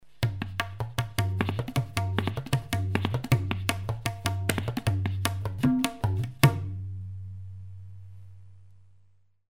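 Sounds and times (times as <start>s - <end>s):
tabla solo: 0.0s - 7.6s.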